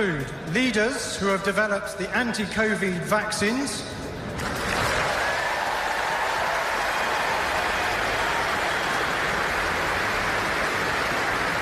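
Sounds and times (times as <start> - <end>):
speech: 0.0 - 4.0
large audience ovation applause: 4.6 - 11.6.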